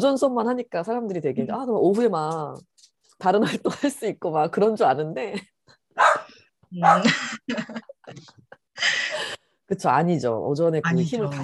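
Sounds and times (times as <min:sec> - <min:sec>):
speech: 0:00.0 - 0:11.4
dog barking: 0:06.0 - 0:07.2.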